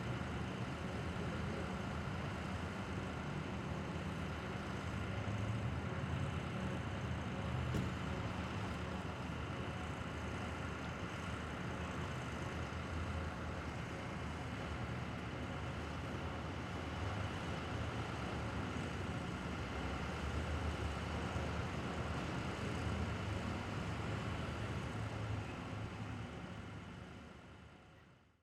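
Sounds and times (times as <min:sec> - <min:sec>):
traffic: 0:00.0 - 0:28.0
engine running: 0:07.2 - 0:09.9.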